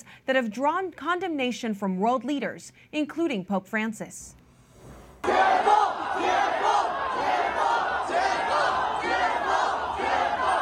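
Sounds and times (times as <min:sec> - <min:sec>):
speech: 0:00.3 - 0:04.4
people shouting for freedom: 0:05.2 - 0:10.6.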